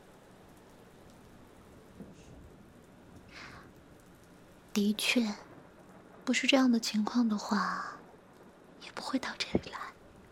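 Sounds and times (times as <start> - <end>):
steady rain: 0.0 - 10.2
speech: 4.8 - 5.4, 6.3 - 8.0, 8.9 - 9.8.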